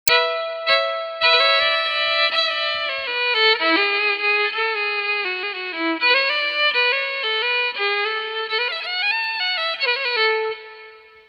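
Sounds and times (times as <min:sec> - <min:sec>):
fiddle: 0:00.1 - 0:11.2.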